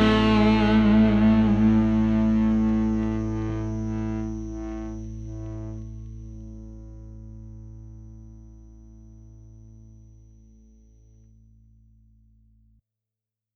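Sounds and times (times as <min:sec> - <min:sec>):
tube fuzz distortion: 0:00.0 - 0:09.9.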